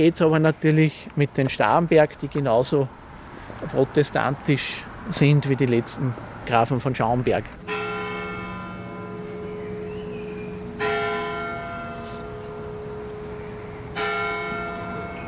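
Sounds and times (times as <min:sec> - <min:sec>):
speech: 0:00.0 - 0:03.0, 0:03.6 - 0:07.6
church bells ringing eleven o'clock: 0:07.6 - 0:15.2.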